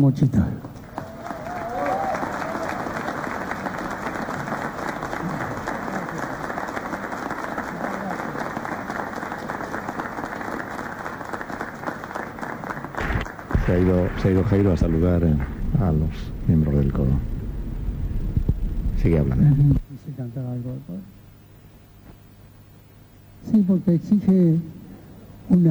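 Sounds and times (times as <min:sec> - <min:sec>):
speech: 0:00.0 - 0:00.7, 0:13.7 - 0:17.3, 0:19.0 - 0:21.2, 0:23.6 - 0:24.7, 0:25.5 - 0:25.6
audience applause for a choir: 0:00.8 - 0:19.8.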